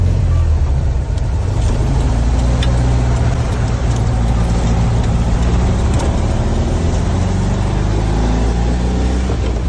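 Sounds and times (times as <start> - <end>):
Volkswagen Beetle air-cooled engine humming and revving: 0.0 - 9.6.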